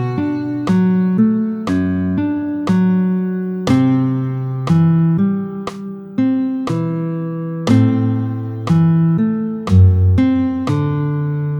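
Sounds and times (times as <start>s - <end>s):
guitar at tempo 60: 0.0s - 11.5s.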